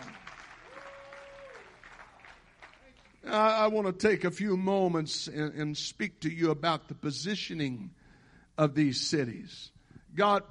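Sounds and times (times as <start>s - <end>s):
audience applause: 0.0s - 3.2s
speech: 3.3s - 8.0s, 8.6s - 10.4s.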